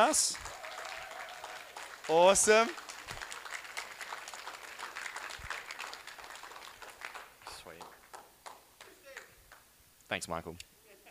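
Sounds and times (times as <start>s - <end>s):
speech: 0.0s - 0.5s, 2.1s - 2.8s, 10.1s - 10.7s
crowd clapping: 0.0s - 9.6s.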